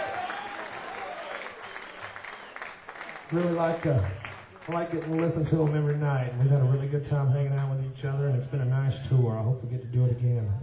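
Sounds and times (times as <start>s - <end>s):
audience applause: 0.0s - 6.9s
speech: 3.3s - 10.6s.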